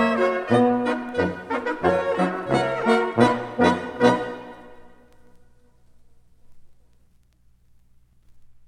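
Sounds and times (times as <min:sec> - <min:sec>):
schottische dance music: 0:00.0 - 0:05.2.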